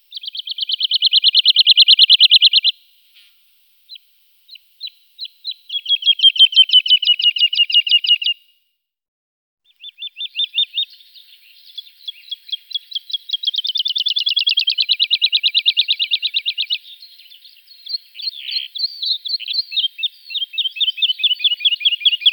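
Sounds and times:
woodlark singing sweet falling notes and whistled phrases: 0:00.0 - 0:03.3, 0:03.9 - 0:08.4, 0:09.7 - 0:22.3.

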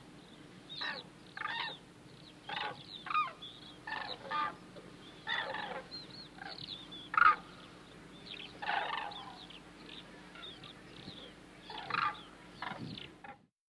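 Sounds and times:
hooded crane calling: 0:00.7 - 0:13.4.

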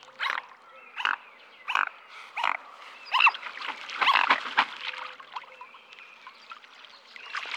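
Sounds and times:
mute swan giving short nasal calls: 0:00.2 - 0:05.0.

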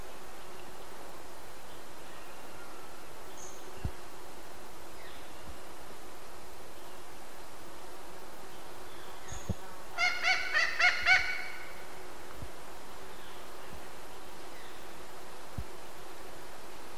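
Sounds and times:
thick-billed parrot calling: 0:10.0 - 0:11.8.

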